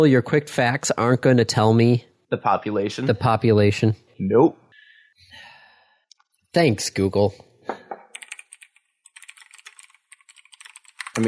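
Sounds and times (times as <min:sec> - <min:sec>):
speech: 0:00.0 - 0:04.6, 0:06.5 - 0:07.8
typing on a computer keyboard: 0:08.1 - 0:11.2.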